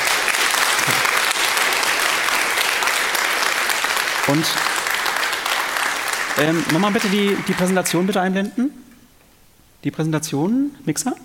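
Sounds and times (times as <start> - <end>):
audience applause: 0.0 - 8.2
speech: 4.3 - 4.7, 6.4 - 8.8, 9.8 - 11.2.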